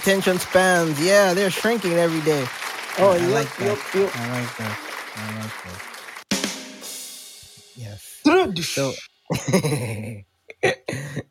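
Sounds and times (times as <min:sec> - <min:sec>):
speech: 0:00.0 - 0:05.9, 0:07.8 - 0:11.2
hand clap: 0:00.0 - 0:06.7
laughter: 0:01.3 - 0:05.8, 0:09.3 - 0:11.2.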